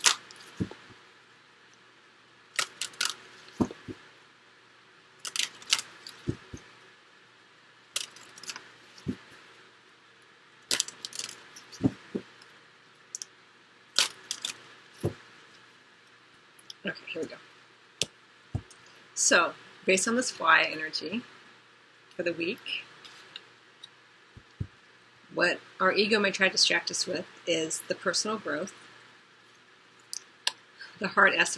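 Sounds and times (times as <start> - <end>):
tarot cards being shuffled and drawn: 0.0 - 1.0, 2.6 - 4.0, 5.2 - 6.7, 8.0 - 9.4, 10.7 - 12.4, 14.0 - 15.3
speech: 17.0 - 17.5, 19.3 - 21.4, 22.2 - 22.9, 25.4 - 28.8, 31.0 - 31.5.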